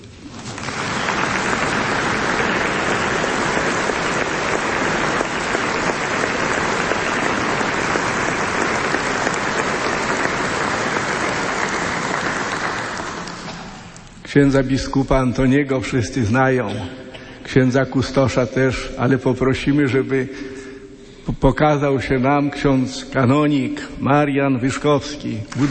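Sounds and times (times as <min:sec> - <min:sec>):
short applause: 0:00.3 - 0:13.9
speech: 0:14.3 - 0:20.5, 0:21.3 - 0:25.6.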